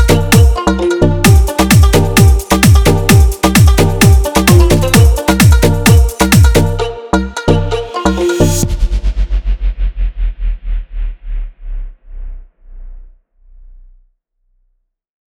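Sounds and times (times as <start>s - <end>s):
hard bass sound check: 0.0s - 14.1s.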